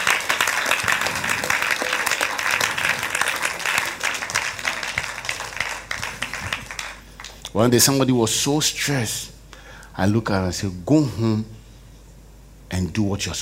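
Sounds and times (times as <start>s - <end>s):
audience clapping hands: 0.0s - 7.6s
speech: 7.6s - 9.4s, 10.0s - 11.6s, 12.8s - 13.4s.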